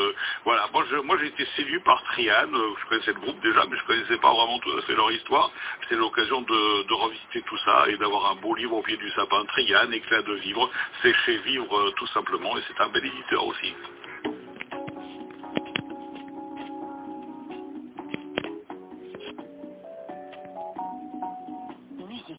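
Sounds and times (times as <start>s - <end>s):
vocals: 0.0s - 14.9s, 21.8s - 22.3s.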